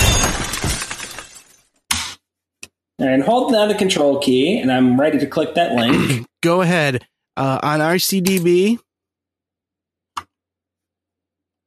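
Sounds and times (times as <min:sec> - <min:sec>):
car crash sound effect with shattering glass: 0:00.0 - 0:01.7
speech: 0:03.0 - 0:08.9.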